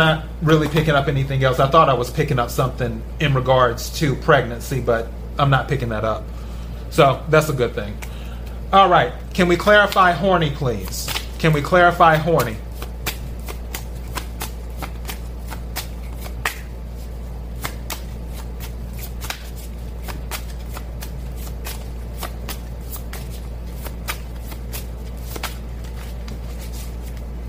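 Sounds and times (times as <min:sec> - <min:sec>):
speech: 0:00.0 - 0:08.1, 0:08.7 - 0:12.7
tarot cards being shuffled: 0:09.6 - 0:27.4.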